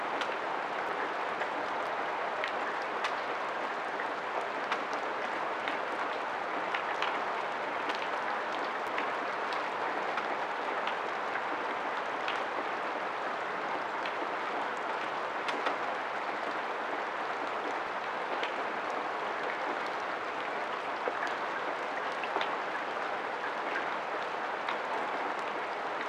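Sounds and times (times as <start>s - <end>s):
rain: 0.0s - 26.0s.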